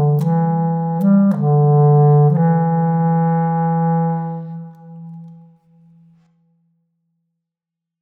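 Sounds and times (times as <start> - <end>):
clarinet theme: 0.0 - 5.6.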